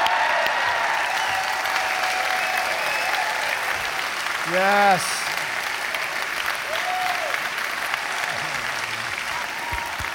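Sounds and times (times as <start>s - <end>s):
audience applause welcoming a new college president at Hope College: 0.0s - 10.1s
speech: 4.5s - 5.2s.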